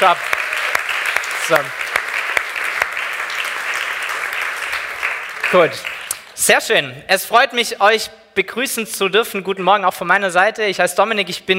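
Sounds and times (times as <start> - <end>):
speech: 0.0 - 0.4, 1.5 - 1.8, 5.5 - 11.5
audience applause: 0.0 - 6.4.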